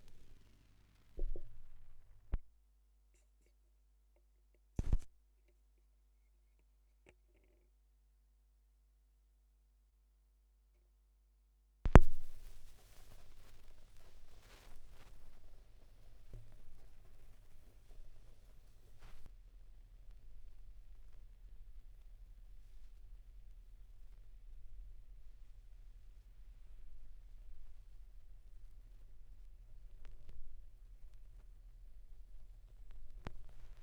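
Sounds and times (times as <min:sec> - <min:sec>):
vinyl record noise at 16 rpm: 0:00.0 - 0:02.5, 0:04.8 - 0:05.1, 0:11.9 - 0:33.8.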